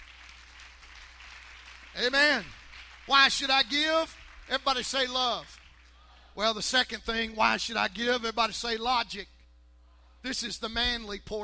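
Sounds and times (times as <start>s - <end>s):
audience clapping hands: 0.0s - 6.0s
speech: 2.0s - 5.6s, 6.4s - 9.3s, 10.2s - 11.4s.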